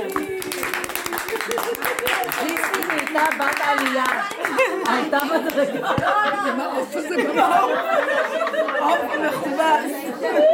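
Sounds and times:
hand clapping: 0.0 - 6.2
laughter: 0.2 - 2.6, 3.3 - 10.5
speech: 3.2 - 10.5.

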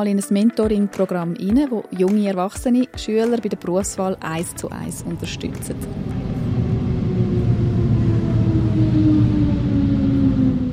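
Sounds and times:
speech: 0.0 - 6.6
faint humming tones: 4.0 - 10.7
train station low rumble of machinery: 4.1 - 10.7.

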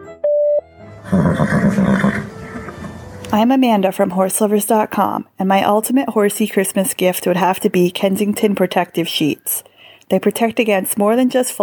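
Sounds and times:
voicemail beep tone: 0.2 - 0.7
speech: 1.1 - 2.3, 3.3 - 11.6.

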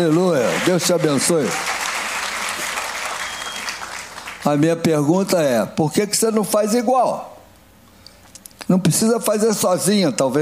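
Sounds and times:
speech: 0.0 - 1.8, 4.4 - 7.3, 8.7 - 10.4
crowd applauding: 0.0 - 4.6.

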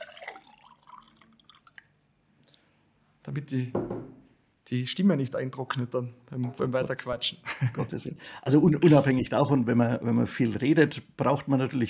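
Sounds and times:
water pouring into a glass: 0.0 - 2.2
speech: 3.3 - 4.1, 4.7 - 11.8.

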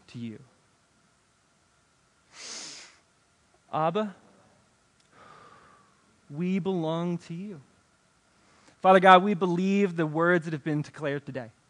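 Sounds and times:
speech: 0.1 - 0.5, 3.7 - 4.2, 6.3 - 7.7, 8.8 - 11.6
deep breath in during a guided prayer: 5.1 - 6.0.

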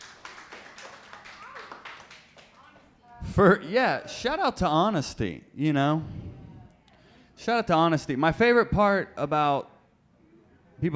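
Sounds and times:
small crowd applauding: 0.0 - 3.0
speech: 3.4 - 6.2, 7.4 - 9.7, 10.8 - 10.9.

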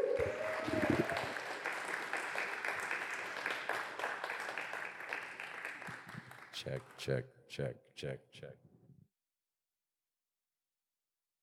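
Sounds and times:
vocal cheer: 0.0 - 1.3
audience applause at a synagogue gathering: 0.0 - 7.2
speech: 6.6 - 8.6.

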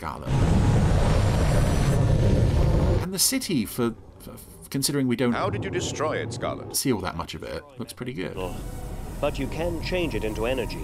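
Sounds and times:
speech: 0.0 - 0.4, 3.1 - 10.8
aircraft engine roar: 0.3 - 3.1, 8.4 - 10.8.

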